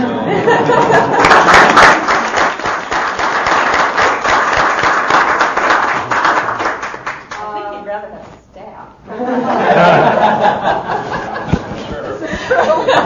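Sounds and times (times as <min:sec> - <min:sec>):
laughter: 0:00.2 - 0:01.5, 0:09.1 - 0:13.0
audience applause at a work-group meeting: 0:00.8 - 0:07.5.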